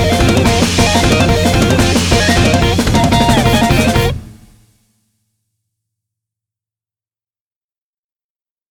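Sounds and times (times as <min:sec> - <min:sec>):
off vocal instrumental music: 0:00.0 - 0:04.7.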